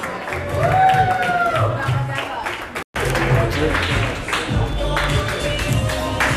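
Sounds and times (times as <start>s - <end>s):
crowd clapping: 0.0s - 6.3s
whoops and shouting voices: 0.4s - 2.0s.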